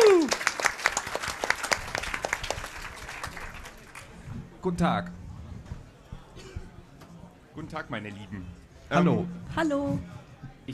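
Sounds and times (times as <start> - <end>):
audience applause: 0.0 - 4.2
speech: 4.6 - 5.2, 7.6 - 10.7.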